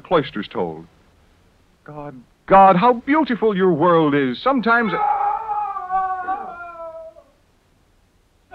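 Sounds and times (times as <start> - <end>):
speech: 0.1 - 1.0, 1.8 - 5.1
madman screaming from a prison cell: 4.8 - 7.4.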